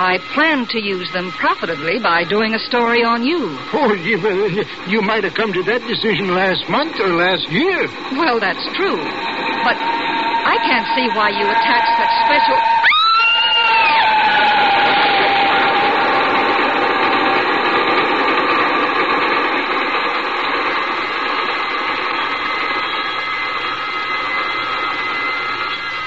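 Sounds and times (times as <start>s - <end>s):
speech: 0.0s - 12.7s
train rumbling: 0.0s - 26.0s
whistle tone sliding down: 9.4s - 17.0s, 22.0s - 26.0s.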